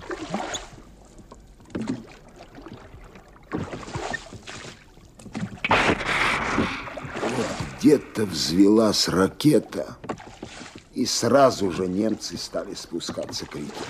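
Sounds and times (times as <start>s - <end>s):
oars splashing: 0.0s - 13.8s
loose rowlocks creaking: 5.1s - 13.8s
speech: 7.8s - 10.0s, 11.0s - 13.8s.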